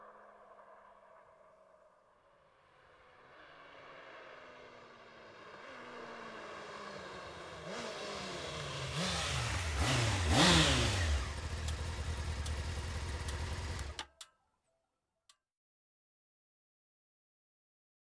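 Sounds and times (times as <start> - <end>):
Honda CB 600 Hornet motorcycle engine: 4.5 - 14.2.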